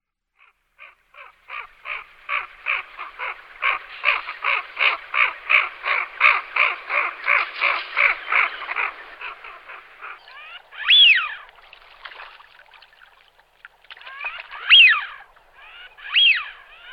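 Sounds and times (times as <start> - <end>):
Eurasian wigeons whistling: 1.5 - 11.5, 14.1 - 16.9.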